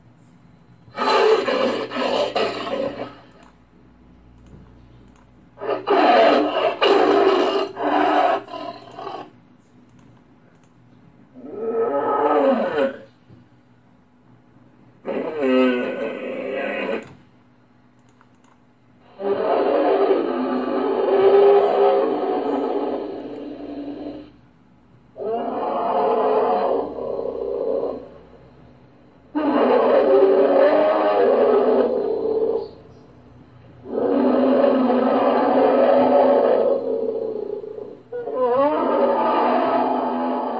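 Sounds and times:
wolverine vocalizing: 0:00.9 - 0:03.5, 0:05.6 - 0:09.3, 0:11.4 - 0:13.1, 0:15.0 - 0:17.2, 0:19.0 - 0:24.4, 0:25.2 - 0:28.3, 0:29.3 - 0:33.0, 0:33.8 - 0:40.5.

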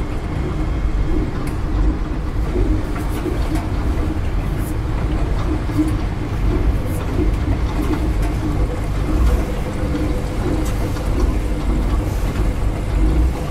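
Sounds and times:
laundry room sounds: 0:00.0 - 0:13.4.

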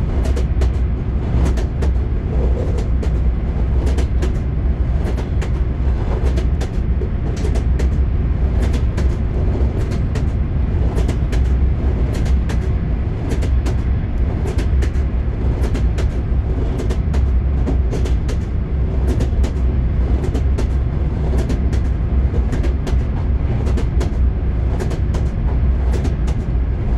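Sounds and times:
train wheels knocking: 0:00.1 - 0:26.9.

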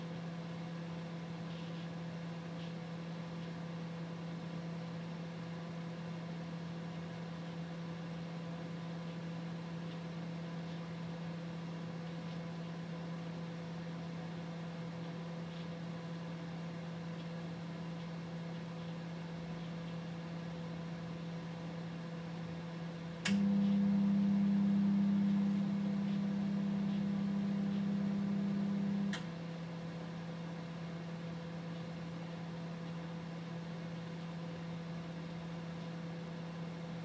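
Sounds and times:
LG microwave oven: 0:00.0 - 0:37.0.

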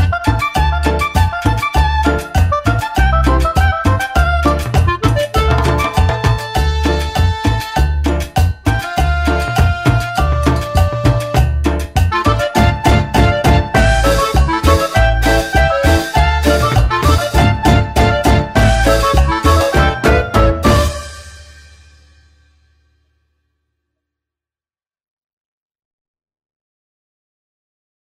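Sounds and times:
cheerful music: 0:00.0 - 0:22.3.

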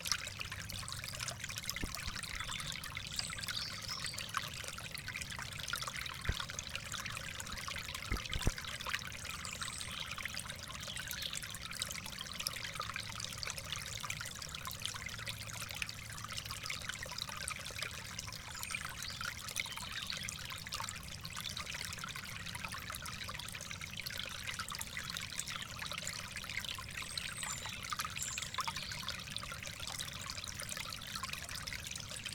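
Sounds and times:
stream: 0:00.0 - 0:32.3.

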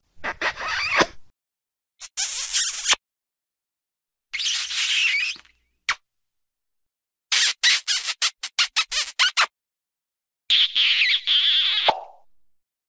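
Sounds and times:
kiss: 0:00.2 - 0:01.2, 0:02.0 - 0:03.0, 0:04.4 - 0:06.0, 0:07.3 - 0:09.5, 0:10.5 - 0:12.3.

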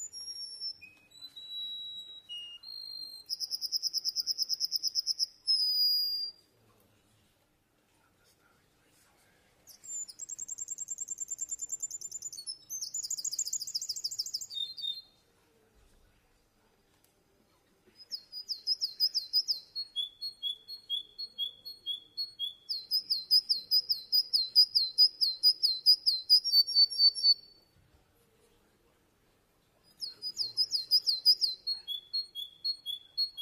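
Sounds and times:
canary singing: 0:00.0 - 0:06.4, 0:09.7 - 0:15.2, 0:18.1 - 0:27.6, 0:29.9 - 0:33.4.

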